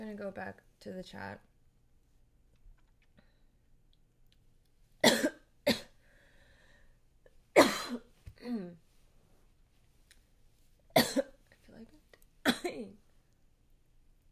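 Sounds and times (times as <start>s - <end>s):
speech: 0.3s - 1.5s
person coughing from a hair in throat: 5.0s - 6.0s, 7.6s - 8.8s, 11.0s - 11.4s, 12.5s - 12.9s.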